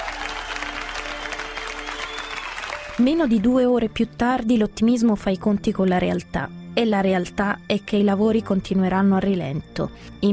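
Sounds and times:
crowd of thousands around a well clapping: 0.0s - 3.6s
speech: 3.0s - 10.3s.

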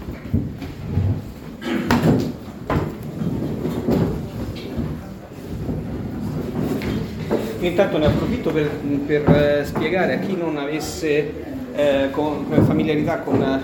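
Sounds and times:
chairs being moved back, scraping and bumping: 0.0s - 13.6s
faint murmuring voices: 3.0s - 13.6s
speech: 7.6s - 13.6s.

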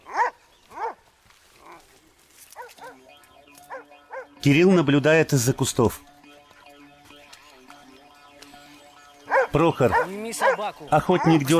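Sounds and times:
hunter's dog barking and yelping: 0.0s - 1.0s, 2.5s - 3.0s, 3.7s - 4.3s, 9.3s - 11.5s
speech: 4.4s - 6.1s, 9.5s - 11.5s.

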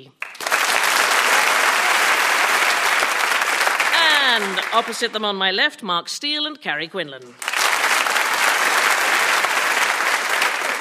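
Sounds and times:
studio audience of a topical news panel show applauding: 0.0s - 5.3s, 7.4s - 10.7s
speech: 4.4s - 7.5s.

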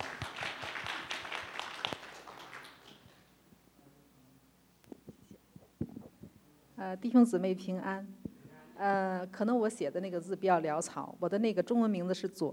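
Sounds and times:
congregation applause at a church thanksgiving testimony meeting: 0.0s - 3.3s
speech: 6.8s - 8.2s, 8.8s - 12.5s.

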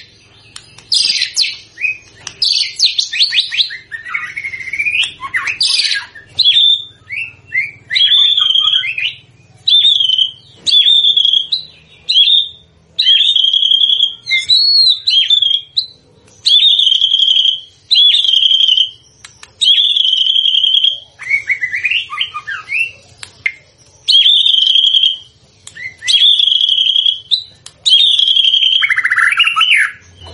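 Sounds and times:
white-rumped shama whistling: 0.8s - 15.9s, 16.5s - 30.3s.

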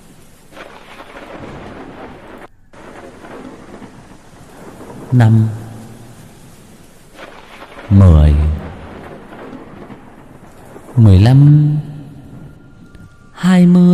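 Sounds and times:
heavy rain: 0.0s - 13.9s
thunder: 0.0s - 13.9s
speech: 5.1s - 5.6s, 7.9s - 8.4s, 11.2s - 11.7s.

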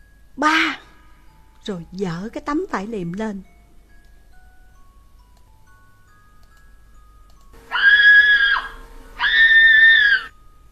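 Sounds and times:
speech: 0.4s - 0.8s, 1.6s - 3.5s
frightened scream echoing through a morgue: 7.6s - 10.3s.

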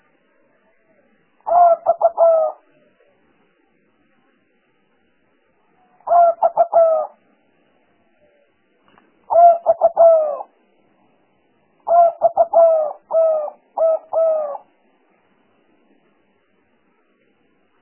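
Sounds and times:
spotted dove cooing: 1.4s - 2.7s, 6.0s - 7.2s, 9.3s - 10.5s, 11.8s - 14.7s.

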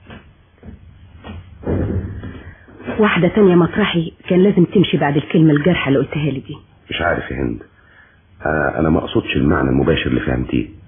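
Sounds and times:
door shut in a radio drama: 1.3s - 2.5s
speech: 2.9s - 7.7s, 8.4s - 10.8s.

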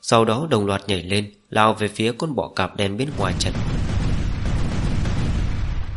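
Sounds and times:
speech: 0.1s - 3.9s
continuous barrage of deep explosive booms: 3.1s - 5.9s.

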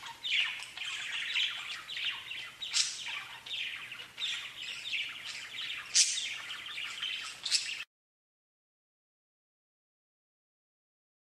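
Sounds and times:
budgerigar warbling: 0.0s - 7.8s.

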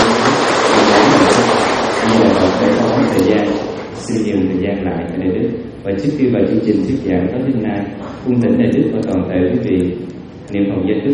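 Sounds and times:
audience applause: 0.0s - 4.0s
speech: 3.4s - 11.1s.

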